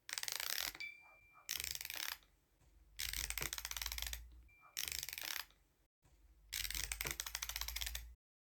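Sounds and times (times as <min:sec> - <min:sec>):
music box being wound up: 0:00.0 - 0:02.2, 0:03.0 - 0:05.5, 0:06.5 - 0:08.2.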